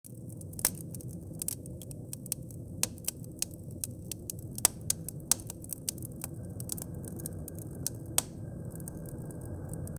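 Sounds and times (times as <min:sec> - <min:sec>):
fireplace burning: 0:00.1 - 0:09.9.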